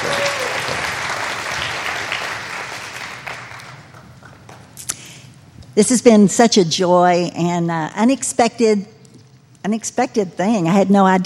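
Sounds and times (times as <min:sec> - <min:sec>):
audience applause: 0:00.0 - 0:04.7
speech: 0:05.8 - 0:08.9, 0:09.6 - 0:11.2.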